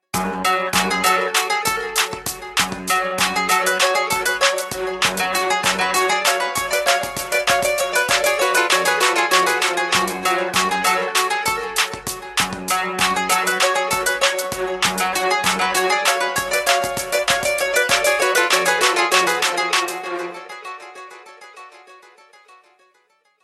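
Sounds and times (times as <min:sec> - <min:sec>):
flamenco music: 0:00.0 - 0:22.8.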